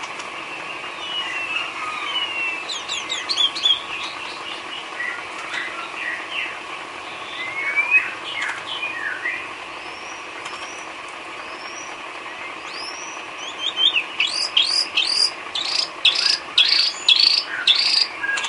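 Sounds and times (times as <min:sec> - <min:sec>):
bird song: 0:00.0 - 0:18.4.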